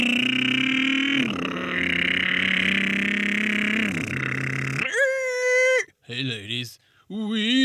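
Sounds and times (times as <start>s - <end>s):
man imitating motorcycle engine with mouth: 0.0s - 5.8s
speech: 6.2s - 7.5s.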